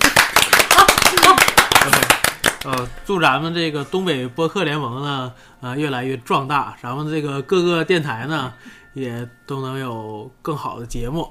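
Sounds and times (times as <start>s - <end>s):
applause: 0.0s - 2.9s
speech: 2.6s - 11.2s.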